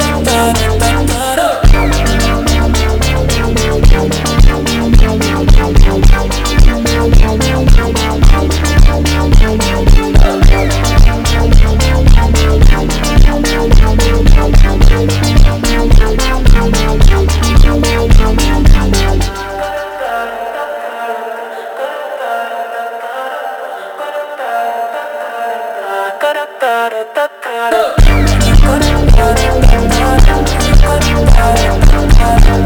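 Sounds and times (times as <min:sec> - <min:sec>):
slowed funk music: 0:00.0 - 0:19.9, 0:28.0 - 0:32.6.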